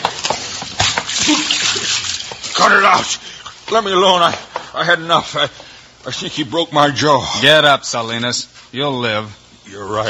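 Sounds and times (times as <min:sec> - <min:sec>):
water from a pitcher splashing over an unconscious man: 0:00.0 - 0:03.3
speech: 0:02.6 - 0:10.0.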